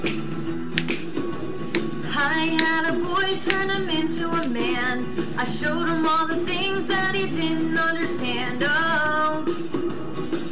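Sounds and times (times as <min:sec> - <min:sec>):
finger snapping: 0:00.0 - 0:01.9, 0:02.5 - 0:02.8, 0:03.5 - 0:03.7
speech: 0:02.2 - 0:10.4.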